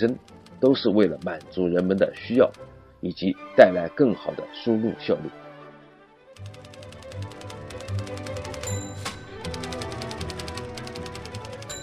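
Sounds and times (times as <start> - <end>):
typewriter typing: 0.0 - 2.7, 6.4 - 11.8
speech: 0.0 - 5.4.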